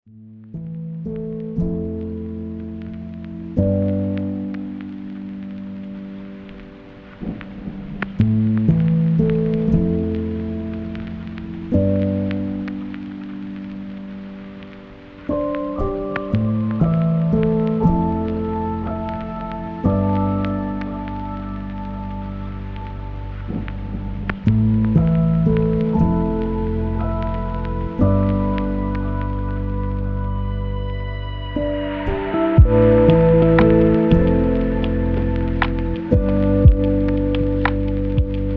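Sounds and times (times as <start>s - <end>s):
lo-fi white noise: 0.5s - 38.5s.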